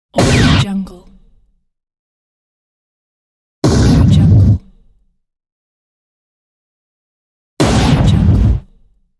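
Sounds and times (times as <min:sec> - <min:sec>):
gunshot sound effects: 0:00.2 - 0:00.9, 0:03.6 - 0:04.6, 0:07.6 - 0:08.6.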